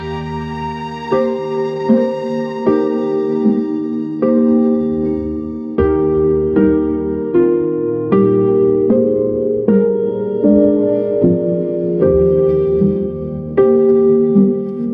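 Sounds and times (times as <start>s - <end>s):
orchestral strings: 0.0s - 14.9s.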